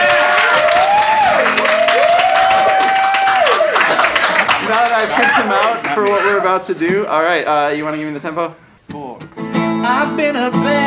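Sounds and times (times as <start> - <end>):
audience applause: 0.0 - 6.6
speech: 6.5 - 8.7, 9.8 - 10.8.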